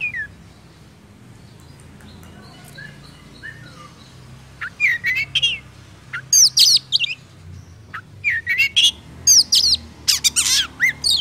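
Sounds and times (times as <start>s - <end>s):
Oriental magpie-robin singing: 0.0s - 11.1s.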